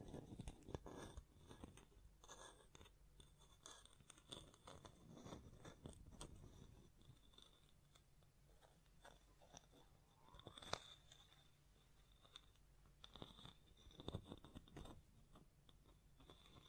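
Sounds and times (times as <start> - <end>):
tapping, scratching and brushing against a microphone: 0.0 - 16.6.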